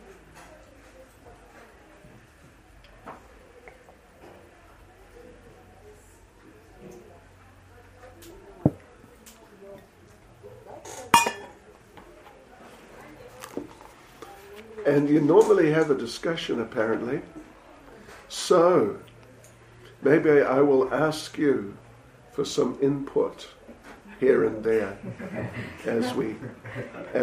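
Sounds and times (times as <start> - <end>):
glass clinking while sipping water: 11.1 - 11.6
speech: 14.9 - 17.4, 18.5 - 19.1, 20.0 - 21.8, 22.4 - 23.6, 24.2 - 27.2
laughter: 25.0 - 27.2.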